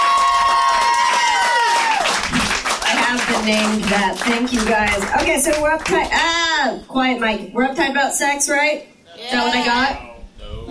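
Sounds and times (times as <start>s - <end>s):
whistling whoops: 0.0s - 2.1s
live audience clapping and cheering: 0.0s - 6.2s
speech: 3.4s - 10.1s.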